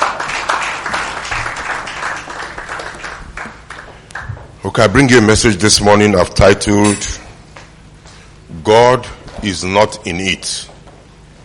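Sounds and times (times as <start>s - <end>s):
audience clapping for the choir: 0.0s - 4.6s
speech: 4.6s - 7.2s, 8.7s - 10.7s.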